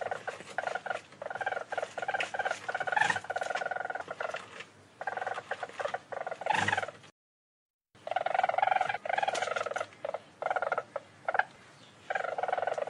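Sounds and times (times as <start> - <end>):
weasel trilling: 0.0 - 7.0, 8.0 - 12.8.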